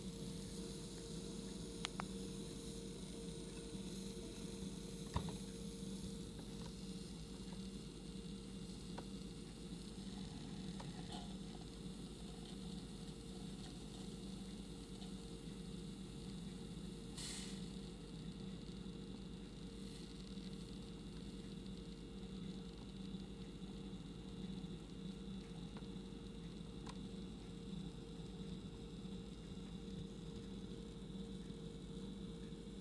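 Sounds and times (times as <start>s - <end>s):
brewing equipment droning: 0.0s - 32.7s
brief hiss: 17.1s - 17.8s.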